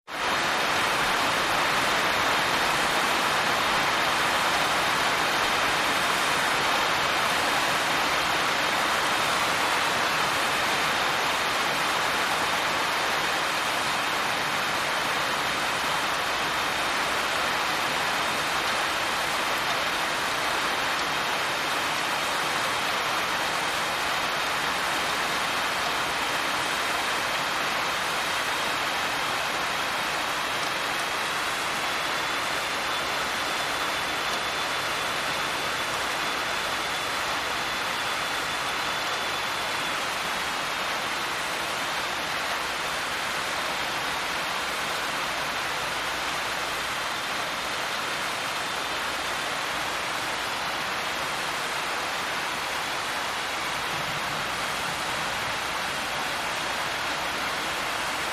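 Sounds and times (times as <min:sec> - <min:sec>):
deluge on a tin roof: 0:00.0 - 0:58.3.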